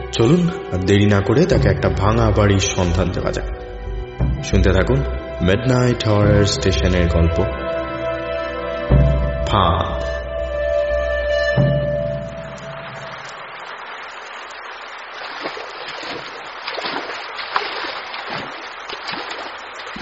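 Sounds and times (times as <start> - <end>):
low tonal music: 0.0 - 13.5
speech: 0.1 - 3.6, 4.4 - 7.6, 9.5 - 10.2
heavy rain falling on a street: 12.8 - 19.9.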